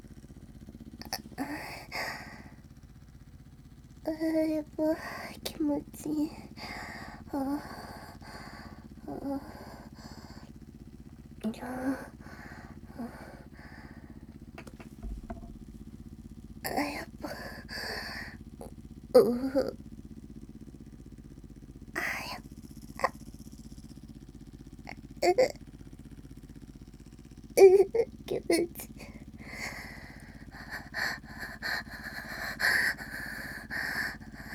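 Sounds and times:
suction vibrator buzzing: 0:00.0 - 0:21.2, 0:21.8 - 0:34.5
woman moaning with suction vibrator: 0:01.0 - 0:02.5, 0:04.1 - 0:10.5, 0:11.4 - 0:15.6, 0:16.7 - 0:18.6, 0:19.2 - 0:19.8, 0:22.0 - 0:22.4, 0:25.2 - 0:25.6, 0:27.6 - 0:34.5.

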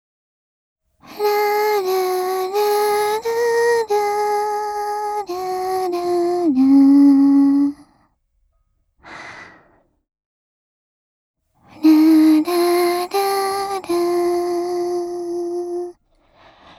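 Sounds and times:
lullaby without reverb: 0:01.0 - 0:07.9, 0:11.7 - 0:16.0.

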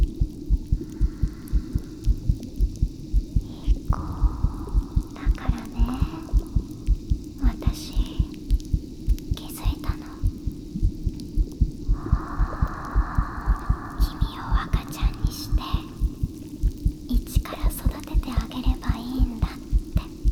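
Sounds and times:
carbonated drink fizzing: 0:00.0 - 0:20.3
heartbeat: 0:00.0 - 0:20.3
person whispering: 0:03.4 - 0:06.6, 0:07.4 - 0:08.4, 0:09.4 - 0:10.4, 0:11.9 - 0:16.4, 0:17.1 - 0:20.3.

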